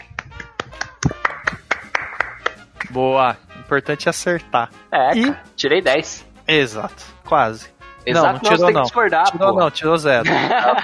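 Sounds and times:
person clapping: 0.0s - 3.0s
speech: 2.9s - 10.8s
laughter: 8.4s - 10.8s.

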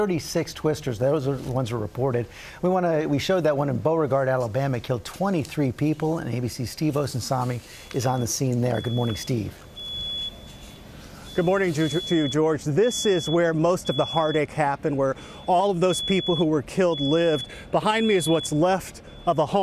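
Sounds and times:
reporter speaking: 0.0s - 9.6s, 11.3s - 19.6s
speech: 0.0s - 9.7s, 11.4s - 19.6s
fire alarms beeping in a tornado-damaged home in Beauregard, Alabama: 5.0s - 19.6s.

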